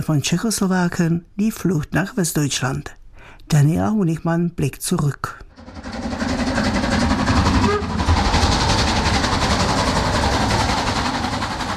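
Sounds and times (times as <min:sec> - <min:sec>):
speech: 0:00.0 - 0:05.9
steam locomotive train running on rails: 0:05.5 - 0:11.7.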